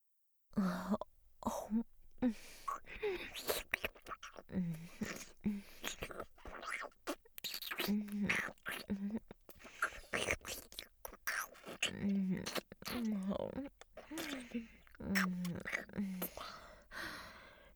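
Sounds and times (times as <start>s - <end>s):
close-mic breathing: 0.6s - 6.6s, 13.8s - 17.7s
saliva mouth sounds: 0.6s - 17.5s.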